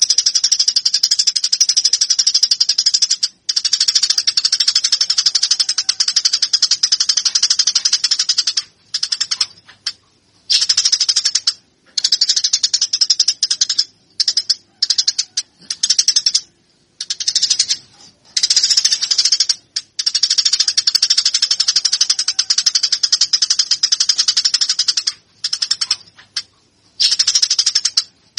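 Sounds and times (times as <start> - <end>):
Eurasian tree sparrow song: 0.0 - 28.3.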